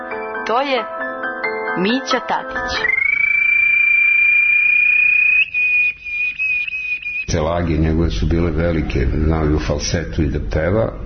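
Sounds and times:
speech: 0.5 - 1.0, 1.8 - 3.0, 7.3 - 11.0
person imitating a small bird's chirping: 2.7 - 7.3.

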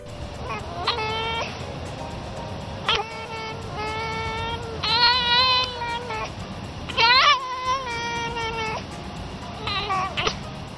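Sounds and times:
pet fox giving whining cries while being petted by its owner: 0.0 - 1.7, 2.8 - 8.9, 9.6 - 10.5
steady low hiss: 0.0 - 10.7.

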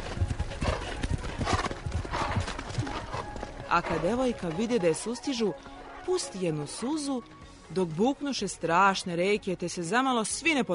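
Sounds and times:
horse hooves galloping: 0.0 - 5.6
horse whinny: 1.4 - 4.4
speech: 3.7 - 10.7.

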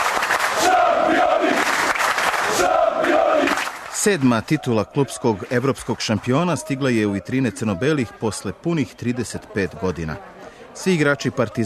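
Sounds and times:
fans chanting and singing at Belgrade's Nikola Tesla airport: 0.5 - 9.6
speech: 4.0 - 11.6.

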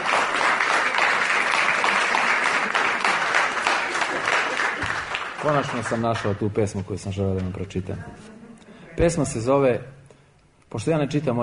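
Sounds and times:
audience applause at a poetry reading: 0.0 - 6.4
speech: 5.4 - 8.4, 9.0 - 10.0, 10.7 - 11.4.

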